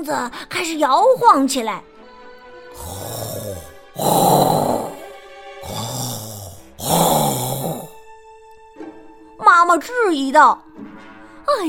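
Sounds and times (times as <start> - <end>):
speech: 0.0 - 1.9, 2.8 - 4.6, 9.6 - 10.7, 11.5 - 11.6
small animal snoring loudly: 2.8 - 8.0.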